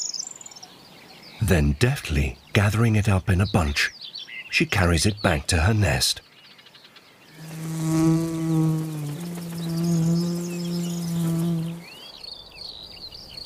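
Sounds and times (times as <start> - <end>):
speech: 1.4 - 6.3
bee buzzing: 7.4 - 12.0.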